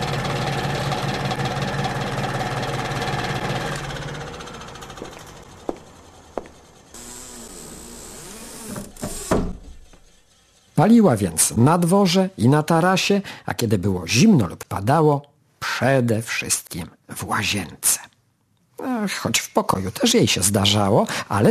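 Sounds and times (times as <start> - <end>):
small ventilation fan running: 0.0 - 10.8
thin high-pitched whine: 5.4 - 10.7
speech: 10.8 - 17.9, 18.8 - 21.5.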